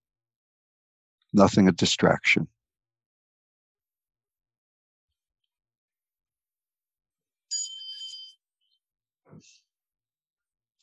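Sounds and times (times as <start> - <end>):
speech: 1.3 - 2.6
meditation bell ringing: 7.5 - 8.4
faint chime: 7.5 - 8.8.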